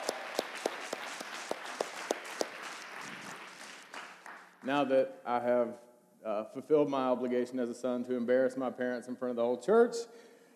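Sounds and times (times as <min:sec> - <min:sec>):
audience applause: 0:00.0 - 0:04.6
speech: 0:04.6 - 0:10.3.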